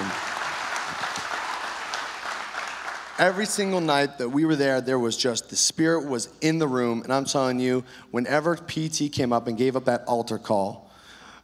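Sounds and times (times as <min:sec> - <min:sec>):
audience applause for a speaker at a church event: 0:00.0 - 0:03.9
speech: 0:03.2 - 0:10.8.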